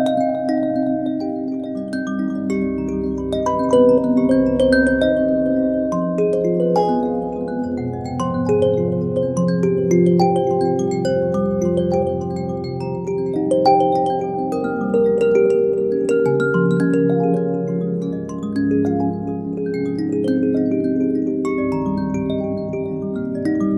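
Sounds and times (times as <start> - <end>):
walnut mbira playing in a cave: 0.1 - 23.7.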